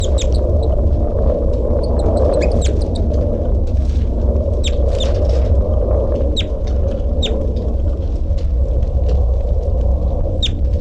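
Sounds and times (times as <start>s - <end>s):
caged bird chirping in a cell: 0.0s - 0.6s, 1.8s - 3.0s
constant low rumble: 0.0s - 10.7s.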